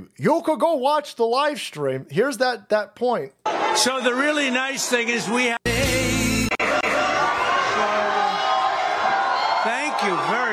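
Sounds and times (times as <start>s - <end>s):
speech: 0.2s - 5.6s
large crowd cheering and shouting at rally: 3.5s - 10.5s.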